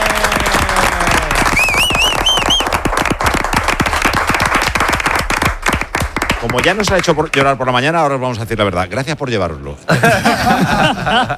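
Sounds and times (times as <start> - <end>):
applause: 0.0 - 7.6
speech: 6.4 - 11.3
laughter: 9.9 - 11.3.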